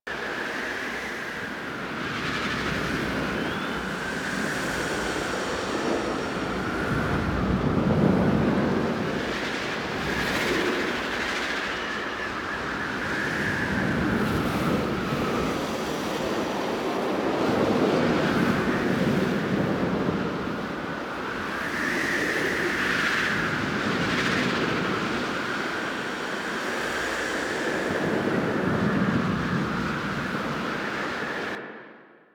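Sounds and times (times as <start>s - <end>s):
large exterior wind ambience in Gas City: 0.0s - 32.3s.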